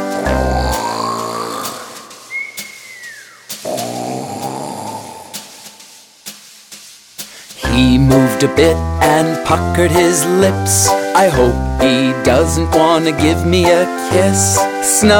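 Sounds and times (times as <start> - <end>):
person imitating bear snoring: 0.1 - 2.3, 3.6 - 5.7
speech: 8.4 - 15.1.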